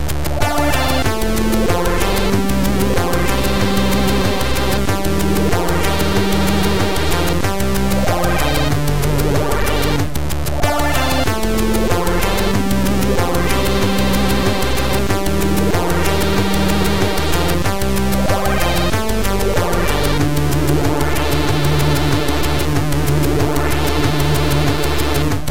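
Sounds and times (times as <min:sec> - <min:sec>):
8-bit music: 0:00.1 - 0:25.5.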